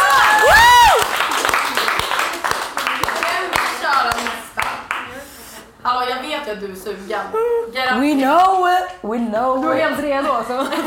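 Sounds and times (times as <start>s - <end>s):
audience applause: 0.0s - 5.1s
speech: 6.5s - 10.8s.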